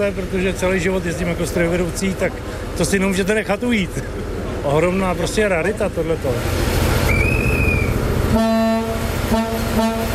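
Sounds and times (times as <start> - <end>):
speech: 0.0 - 6.6, 8.3 - 8.6
diesel train engine and rail rumble: 0.0 - 10.1
historic diesel train horn: 7.4 - 10.1.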